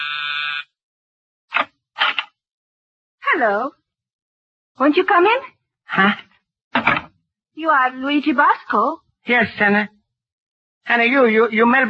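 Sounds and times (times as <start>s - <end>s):
doorbell buzzer: 0.0s - 0.8s
speech: 3.3s - 3.8s, 4.8s - 7.0s, 7.6s - 10.0s, 10.8s - 11.8s.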